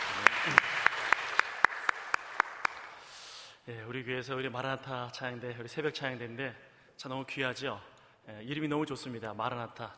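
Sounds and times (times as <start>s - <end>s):
audience applause: 0.0s - 3.0s
speech: 3.7s - 9.9s.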